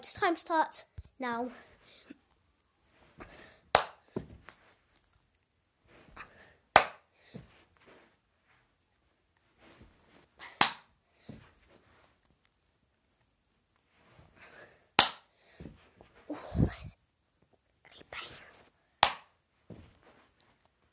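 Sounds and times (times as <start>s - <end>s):
speech: 0.0s - 1.7s
hand clapping during clap push-ups: 3.7s - 4.0s, 6.8s - 7.0s, 10.6s - 10.9s, 15.0s - 15.3s, 19.0s - 19.3s.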